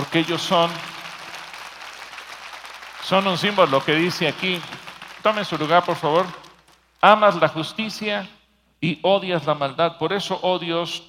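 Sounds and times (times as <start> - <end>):
applause: 0.0 - 7.2
speech: 0.1 - 0.9, 3.1 - 6.4, 7.0 - 11.0.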